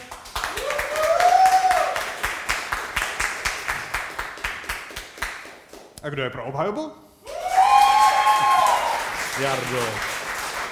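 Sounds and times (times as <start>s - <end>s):
audience clapping: 0.0s - 6.0s, 7.4s - 10.7s
whoop: 0.5s - 2.0s, 7.3s - 9.1s
speech: 6.0s - 7.0s, 9.4s - 10.1s.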